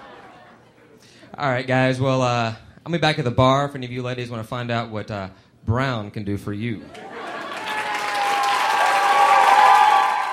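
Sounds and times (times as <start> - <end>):
laughter: 0.0 - 1.0, 6.8 - 8.3
speech: 1.3 - 7.1
audience applause: 7.0 - 10.3.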